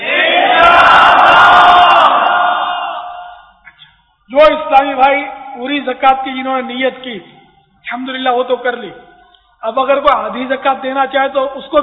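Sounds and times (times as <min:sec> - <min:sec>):
massed religious gathering chanting a slogan in unison: 0:00.0 - 0:03.4
speech: 0:04.4 - 0:11.8.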